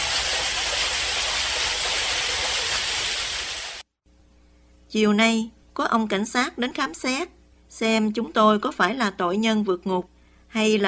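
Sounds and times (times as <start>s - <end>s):
heavy rain pouring: 0.0s - 3.8s
water gushing into drains: 0.0s - 3.8s
speech: 4.9s - 10.8s.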